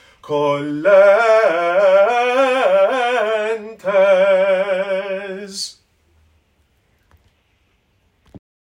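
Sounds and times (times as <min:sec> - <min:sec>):
bass voice singing: 0:00.2 - 0:05.8.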